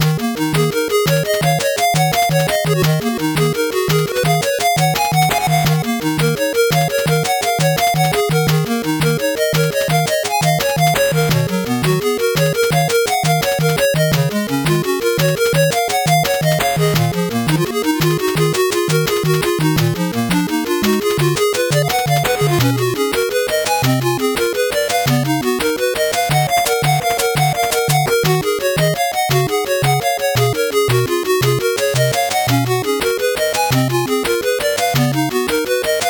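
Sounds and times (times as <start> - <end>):
slow 8-bit background music: 0.0 - 36.0.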